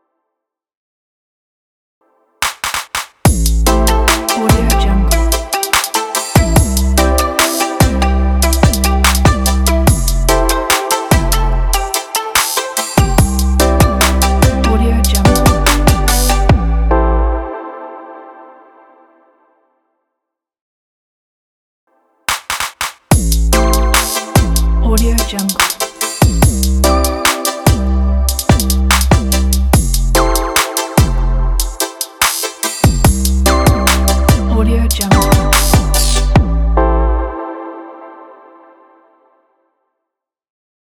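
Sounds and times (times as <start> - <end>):
podcast intro music: 3.3 - 19.0, 23.1 - 38.9.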